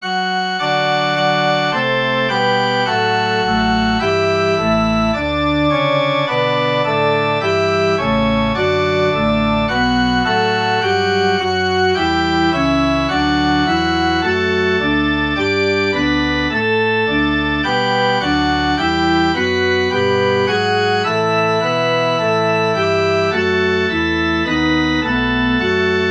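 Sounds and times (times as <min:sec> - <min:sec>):
musical prelude: 0:00.0 - 0:26.0.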